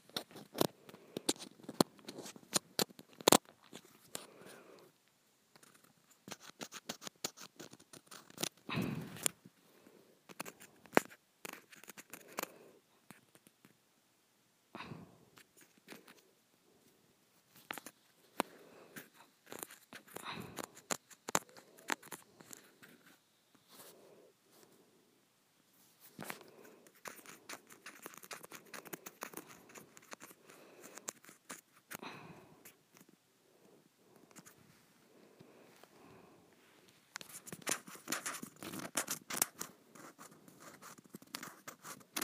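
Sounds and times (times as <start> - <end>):
scratching on a textured plastic surface: 0.0 - 4.8, 5.5 - 9.4, 10.3 - 13.8, 15.4 - 16.3, 17.4 - 24.7, 25.8 - 33.2, 34.2 - 34.8, 37.1 - 42.2.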